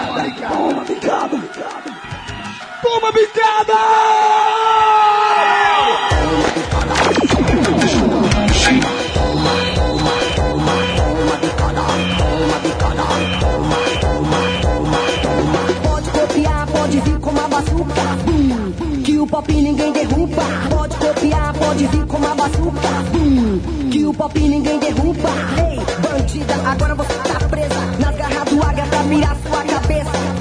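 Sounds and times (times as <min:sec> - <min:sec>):
steady pounding rhythm: 0:00.0 - 0:04.0, 0:06.0 - 0:30.4
football fans cheering and yelling: 0:00.0 - 0:15.8
speech: 0:00.2 - 0:02.0, 0:02.9 - 0:04.6, 0:21.8 - 0:27.4, 0:28.8 - 0:29.7.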